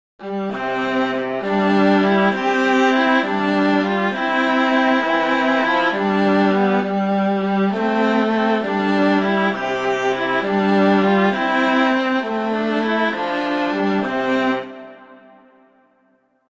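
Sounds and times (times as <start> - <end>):
Christmas flute quartet playing a carol: 0.3 - 15.1.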